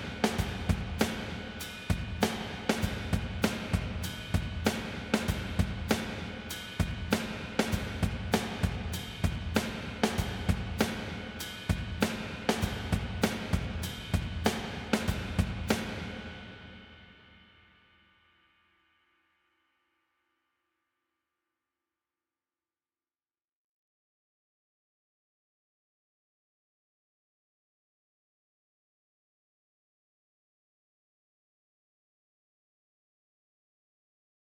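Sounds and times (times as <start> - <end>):
seventies drum kit with squish and drive: 0.0 - 16.9.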